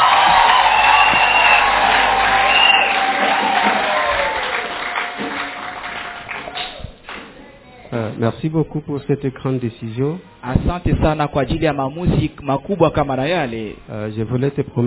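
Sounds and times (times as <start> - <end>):
crowd applauding: 0.0 - 7.4
speech: 8.2 - 14.8.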